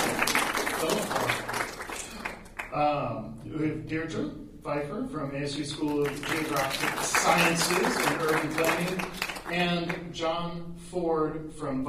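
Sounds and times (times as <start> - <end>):
audience at a panel event on real estate and urban planning clapping: 0.0 - 2.8, 5.8 - 10.0
speech: 2.8 - 11.8.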